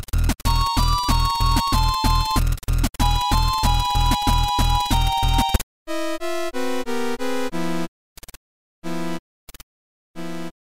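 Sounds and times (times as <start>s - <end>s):
eight-bit music: 0.1s - 7.9s.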